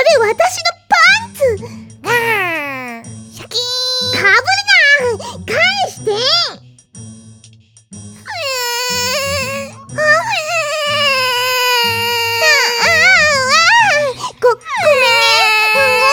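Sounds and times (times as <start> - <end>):
speech: 0.1 - 2.4
child crying: 2.0 - 6.4, 8.2 - 16.1.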